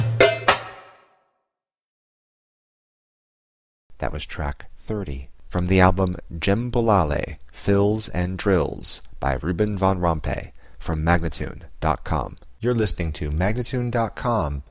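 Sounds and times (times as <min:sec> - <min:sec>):
djembe playing: 0:00.0 - 0:01.0
person speaking: 0:03.9 - 0:14.6.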